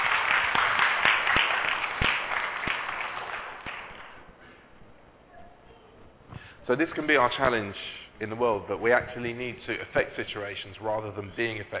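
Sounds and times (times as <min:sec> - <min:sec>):
audience round of applause: 0:00.0 - 0:04.2
speech: 0:06.7 - 0:11.7.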